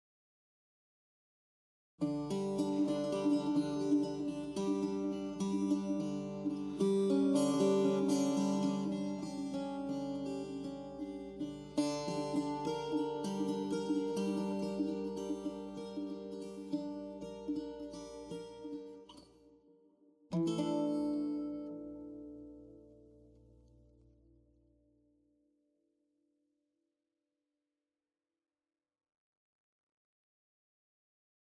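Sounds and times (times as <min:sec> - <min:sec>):
acoustic solo: 0:02.0 - 0:19.6, 0:20.3 - 0:24.7.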